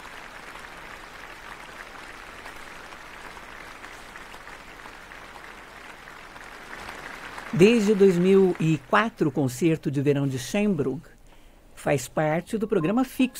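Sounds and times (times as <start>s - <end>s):
audience applause after orchestra piece: 0.0s - 9.6s
speech: 7.5s - 11.1s, 11.8s - 13.3s.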